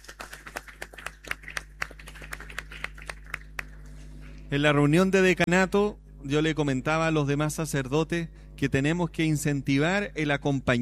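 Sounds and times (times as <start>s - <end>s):
audience applause: 0.0s - 3.9s
speech: 4.5s - 10.8s.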